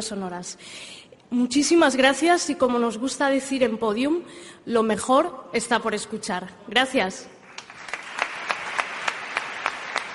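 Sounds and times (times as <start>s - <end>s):
speech: 0.0s - 7.4s
audience applause: 7.5s - 10.1s.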